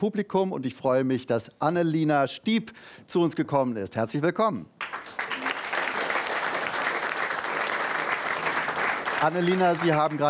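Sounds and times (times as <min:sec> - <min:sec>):
speech: 0:00.0 - 0:05.2, 0:09.2 - 0:10.2
audience applause: 0:04.8 - 0:10.2.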